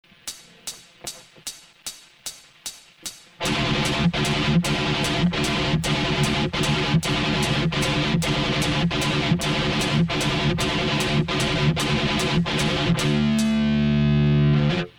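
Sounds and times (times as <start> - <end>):
thrash music mix: 3.4 - 14.9.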